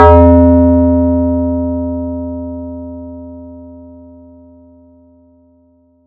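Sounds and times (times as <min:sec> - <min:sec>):
random bell sound effect: 0:00.0 - 0:01.1.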